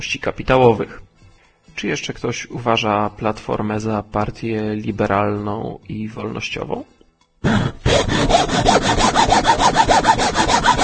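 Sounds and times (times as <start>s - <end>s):
speech: 0.0s - 1.1s, 1.8s - 10.4s
sawing: 7.5s - 10.8s.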